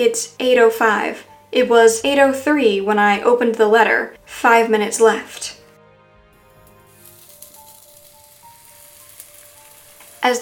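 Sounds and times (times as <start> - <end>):
speech: 0.0 - 5.6, 10.2 - 10.4
meat sizzling in a frying pan: 6.4 - 10.4.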